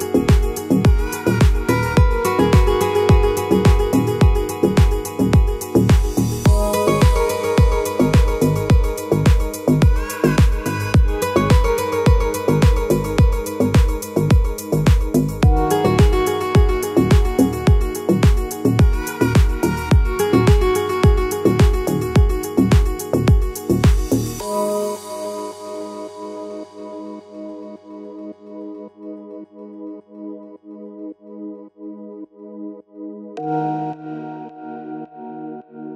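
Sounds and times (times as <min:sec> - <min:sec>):
deep house music: 0:00.0 - 0:28.4.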